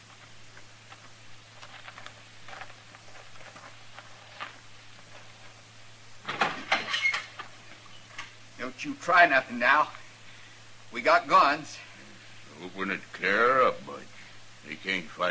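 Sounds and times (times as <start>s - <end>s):
footsteps of someone approaching in a Western radio drama: 0.0s - 5.8s
speech: 8.8s - 10.0s, 10.9s - 11.8s, 12.6s - 13.9s, 14.7s - 15.2s.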